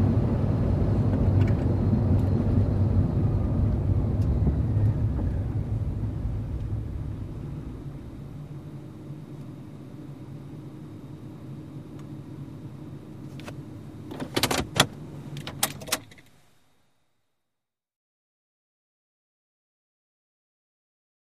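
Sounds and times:
SUV driving at 25 to 35 mph: 0:00.0 - 0:16.3.

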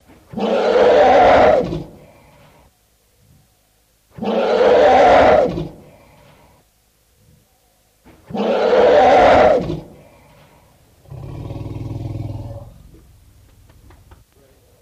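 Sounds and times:
elephant harsh roar: 0:00.3 - 0:02.1, 0:04.2 - 0:05.9, 0:08.3 - 0:10.0, 0:11.0 - 0:12.9.

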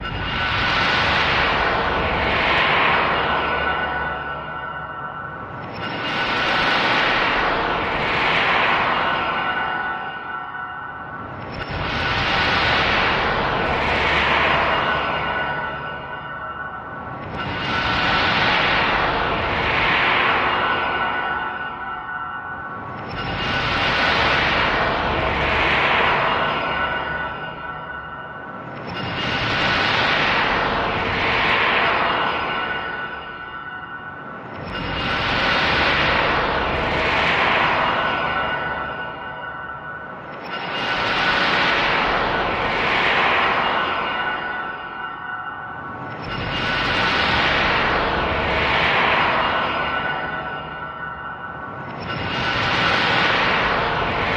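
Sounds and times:
metallic shimmer: 0:00.0 - 0:54.3.

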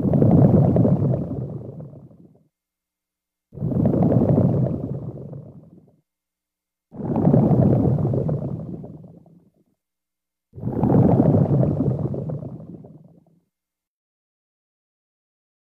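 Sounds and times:
bubbles underwater: 0:00.0 - 0:02.4, 0:03.6 - 0:06.0, 0:06.9 - 0:09.5, 0:10.6 - 0:13.4.

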